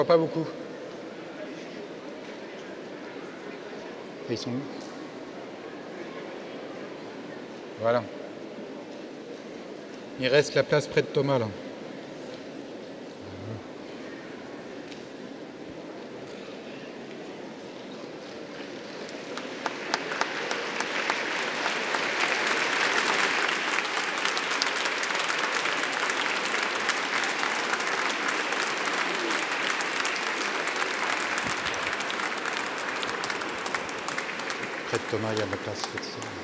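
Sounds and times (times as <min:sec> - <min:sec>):
speech: 0:00.0 - 0:00.7, 0:04.3 - 0:04.8, 0:07.8 - 0:08.2, 0:10.2 - 0:11.6, 0:35.1 - 0:36.4
large crowd applause in a reverberant basilica: 0:18.3 - 0:36.4.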